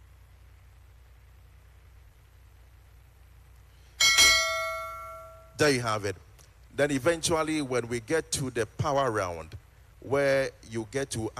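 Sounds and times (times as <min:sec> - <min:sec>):
quiz show ten-second timer bell-like chime: 0:04.0 - 0:05.6
speech: 0:05.6 - 0:11.3.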